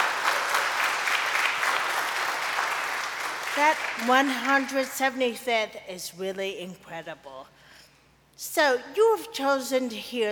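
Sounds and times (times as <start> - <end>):
audience applauding: 0.0 - 4.3
speech: 3.6 - 7.6, 8.4 - 10.3.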